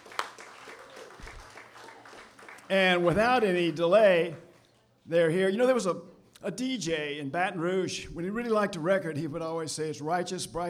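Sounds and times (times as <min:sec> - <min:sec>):
audience applause: 0:00.0 - 0:04.5
speech: 0:02.7 - 0:04.4, 0:05.1 - 0:10.6.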